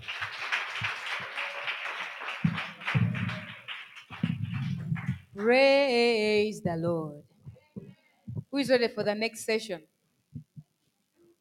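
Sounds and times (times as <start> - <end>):
audience clapping: 0.0 - 5.6
speech: 5.4 - 7.2, 8.6 - 9.9.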